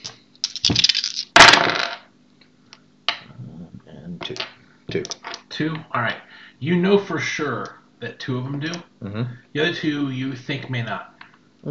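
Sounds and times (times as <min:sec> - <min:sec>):
dice being rolled: 0:00.0 - 0:02.0, 0:04.3 - 0:05.5
speech: 0:04.9 - 0:11.7.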